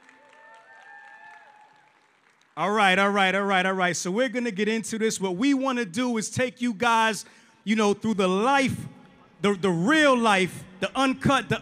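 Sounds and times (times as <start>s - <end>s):
audience round of applause: 0.0s - 2.6s
speech: 2.6s - 11.6s.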